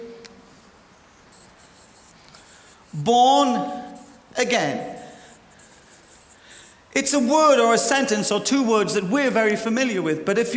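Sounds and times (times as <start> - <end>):
low steady hiss: 0.0 - 10.5
someone writing something down: 1.3 - 6.9
speech: 3.0 - 3.8, 4.4 - 4.9, 7.0 - 10.5.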